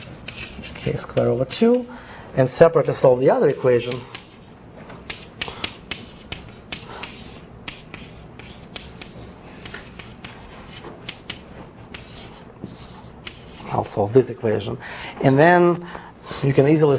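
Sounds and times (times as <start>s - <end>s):
chalk writing an equation on a board during a lecture: 0.0s - 1.9s, 2.6s - 13.8s
speech: 0.9s - 4.2s, 13.8s - 16.9s.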